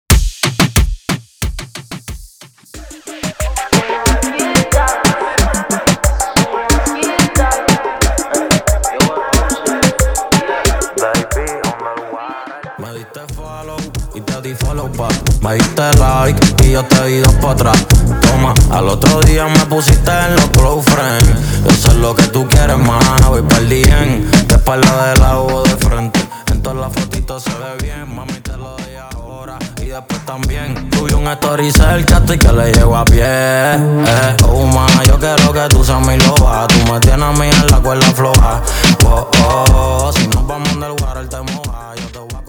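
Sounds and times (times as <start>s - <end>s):
intro music at 91 bpm: 0.1s - 42.4s.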